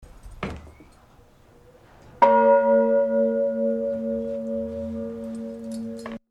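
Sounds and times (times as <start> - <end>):
bell ringing: 2.2 - 6.2.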